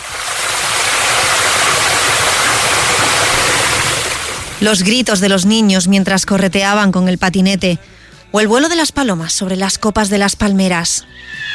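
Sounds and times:
fountain water falling: 0.0s - 5.2s
speech: 4.6s - 11.5s.

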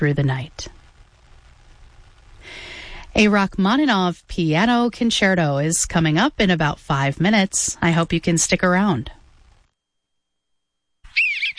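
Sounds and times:
speech: 0.0s - 0.8s, 3.2s - 9.2s
Eastern Bluebird singing: 11.1s - 11.5s.

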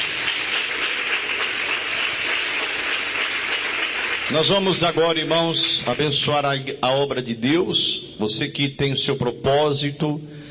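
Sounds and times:
audience applause: 0.0s - 6.0s
speech: 4.3s - 10.4s.

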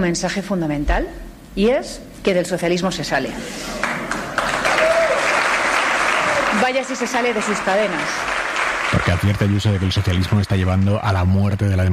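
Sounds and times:
speech: 0.0s - 3.9s, 6.7s - 8.4s, 9.0s - 11.9s
audience applause after a speech at a private university in Mexico's capital: 3.7s - 11.2s.

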